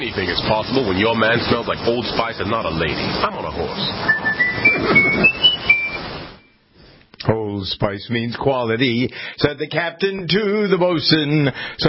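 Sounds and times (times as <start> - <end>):
speech: 0.0 - 5.4, 7.2 - 11.8
whistled commercial jingle: 4.0 - 6.6.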